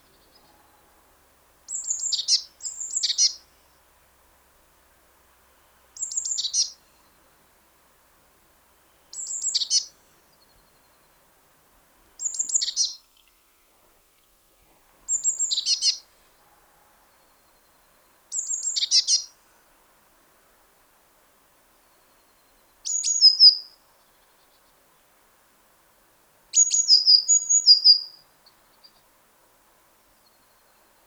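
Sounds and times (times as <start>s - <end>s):
Eurasian blue tit calls with thin notes and buzzy endings: 1.7s - 3.4s, 9.1s - 9.9s, 15.1s - 16.0s, 18.3s - 19.3s, 26.6s - 28.1s.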